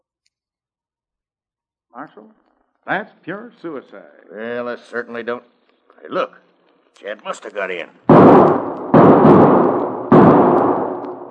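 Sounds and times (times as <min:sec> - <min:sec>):
speech: 0:02.0 - 0:06.4, 0:07.0 - 0:08.0
gunshot: 0:08.1 - 0:11.2.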